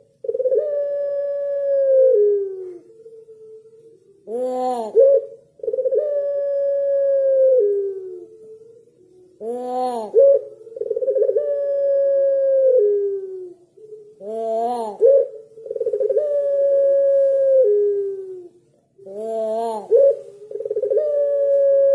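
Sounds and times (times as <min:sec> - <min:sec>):
Barbary dove cooing: 0:00.0 - 0:21.9.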